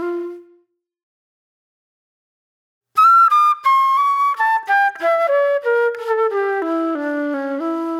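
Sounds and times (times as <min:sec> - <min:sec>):
reflective flute music: 0:00.0 - 0:00.8, 0:03.0 - 0:07.9.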